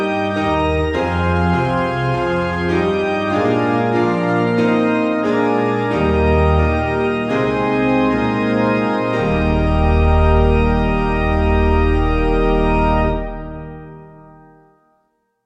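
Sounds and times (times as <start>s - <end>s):
piano backing music for churches: 0.0s - 15.0s.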